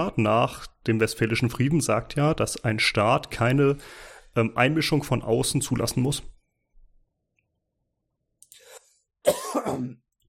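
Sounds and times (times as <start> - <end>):
speech: 0.0 - 6.3
person sneezing: 8.6 - 10.0.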